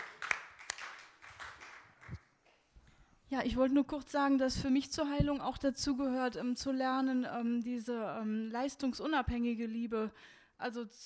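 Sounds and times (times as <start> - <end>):
group clapping: 0.0 - 2.3
speech: 3.3 - 11.0.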